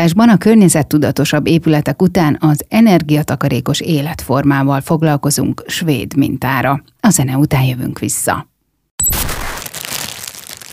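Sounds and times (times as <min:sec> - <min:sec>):
speech: 0:00.0 - 0:09.3
plastic bag crinkling: 0:09.2 - 0:10.7.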